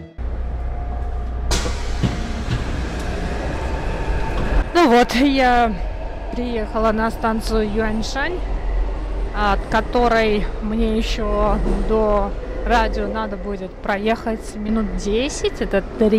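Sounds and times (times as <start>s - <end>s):
metro train running: 0.2s - 16.1s
speech: 4.9s - 8.5s, 9.4s - 16.1s.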